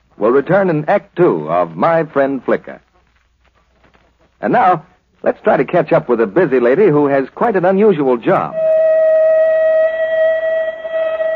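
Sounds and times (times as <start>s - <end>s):
speech: 0.2s - 2.8s, 4.4s - 8.7s
end-of-shift factory whistle at Central Aircraft: 8.5s - 11.3s.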